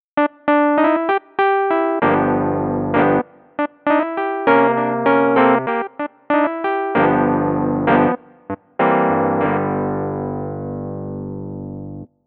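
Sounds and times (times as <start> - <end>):
electric pianos: 0.2 - 12.1.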